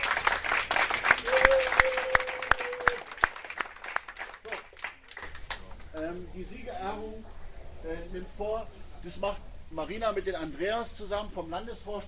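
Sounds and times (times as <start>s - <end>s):
crowd applause: 0.0s - 5.8s
speech: 6.4s - 12.0s.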